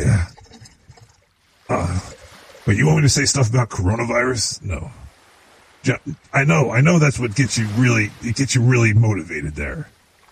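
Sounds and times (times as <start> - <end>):
pressed coconut pouring into vodka: 0.0 - 3.2
speech: 2.7 - 5.1, 5.8 - 10.0.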